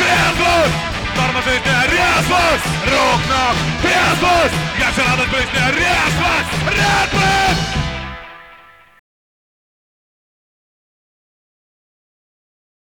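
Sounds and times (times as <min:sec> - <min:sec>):
punk music: 0:00.0 - 0:09.0.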